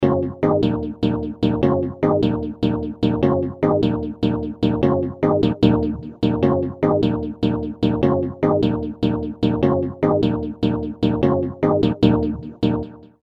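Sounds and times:
plonk riff with chords: 0.0s - 13.1s.

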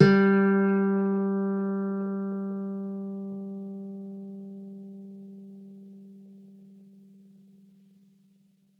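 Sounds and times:
soft G3 nylon guitar note: 0.0s - 6.6s.

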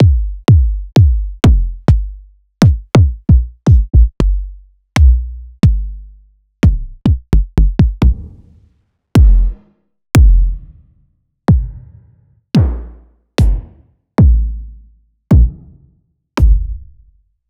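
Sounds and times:
kick drums: 0.0s - 4.4s, 5.0s - 5.8s, 6.6s - 8.3s, 9.2s - 9.6s, 10.2s - 10.6s, 11.5s - 12.0s, 12.6s - 14.5s, 15.3s - 15.8s, 16.4s - 16.7s.

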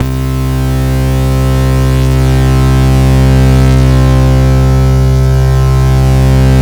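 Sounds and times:
acid cut bass: 0.0s - 6.6s.

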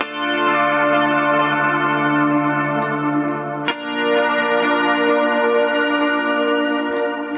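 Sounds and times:
guitar chords: 0.0s - 7.3s.

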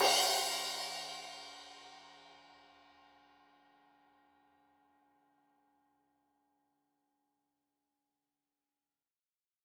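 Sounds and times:
15 inch crash cymbal edge hit: 0.0s - 2.3s.

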